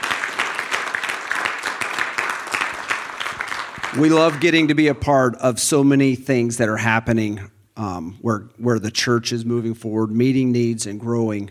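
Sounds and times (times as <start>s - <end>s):
audience round of applause: 0.0s - 4.8s
speech: 3.9s - 11.4s.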